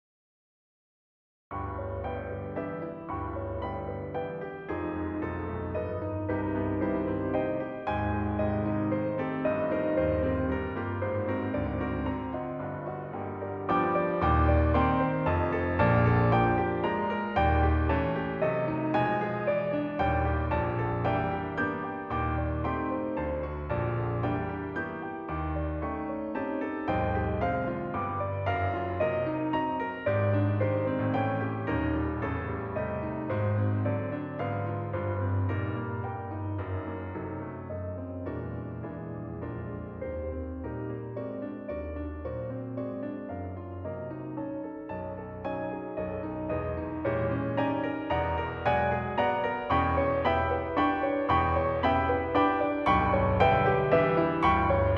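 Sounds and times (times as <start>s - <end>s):
piano waltz: 1.5s - 54.9s.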